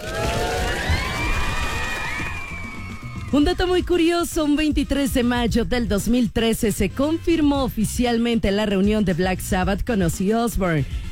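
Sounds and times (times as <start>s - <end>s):
audience applause: 0.0s - 3.4s
speech: 3.3s - 11.0s.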